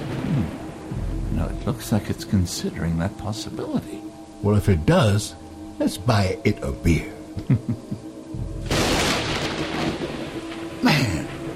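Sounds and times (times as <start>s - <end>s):
thunder from a lightning strike: 0.0s - 2.0s, 8.5s - 11.5s
speech: 1.6s - 8.0s
laughter: 7.4s - 8.1s.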